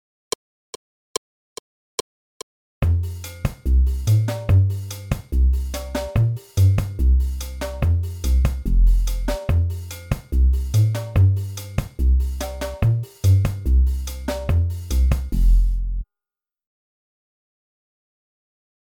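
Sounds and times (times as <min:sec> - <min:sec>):
street percussion beat: 0:02.8 - 0:16.0.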